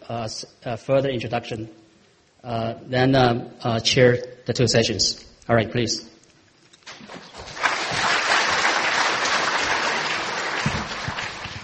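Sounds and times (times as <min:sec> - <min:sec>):
speech: 0:00.1 - 0:01.8, 0:02.4 - 0:06.1
audience clapping: 0:06.9 - 0:11.6.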